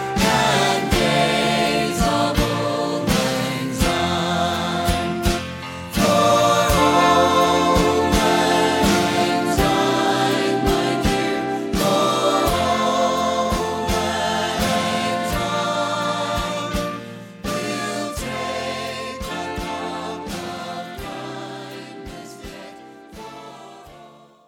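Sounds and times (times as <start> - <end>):
Christmas brass music: 0.0 - 24.1.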